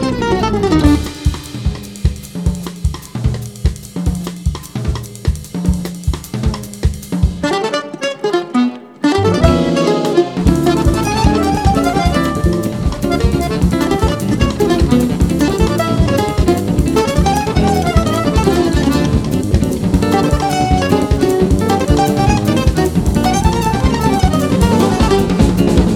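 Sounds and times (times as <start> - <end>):
samba blues music: 0.0 - 25.9.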